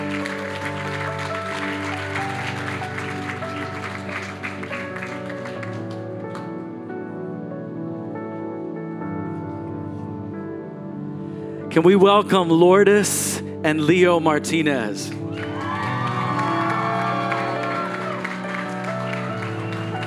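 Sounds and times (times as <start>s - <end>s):
congregation clapping at a church service: 0.0s - 6.7s, 15.1s - 20.0s
sustained tonal music: 0.0s - 20.0s
speech: 11.8s - 15.5s.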